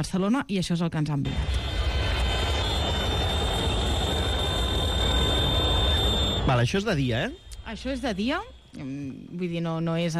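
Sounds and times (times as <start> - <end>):
speech: 0.0 - 1.7, 6.5 - 10.1
crowd: 1.2 - 6.6
car horns: 1.3 - 8.8
street traffic roar: 1.3 - 8.8
thin sustained high-pitched tone: 1.3 - 9.2.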